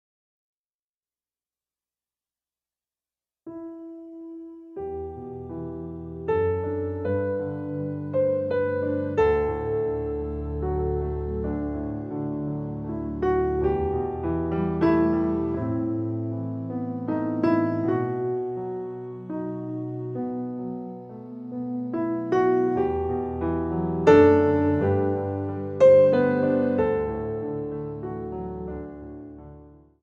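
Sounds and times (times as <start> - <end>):
piano: 3.5 - 30.0.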